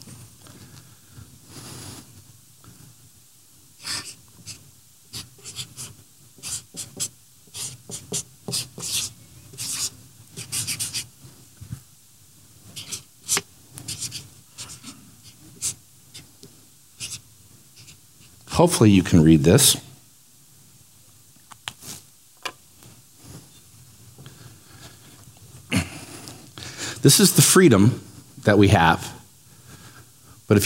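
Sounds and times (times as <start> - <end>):
writing on masking tape on the back of a T-square: 3.8 - 11.1, 12.7 - 16.3, 17.0 - 17.2, 17.8 - 18.4
speech: 18.6 - 19.9, 27.1 - 29.2, 30.5 - 30.6.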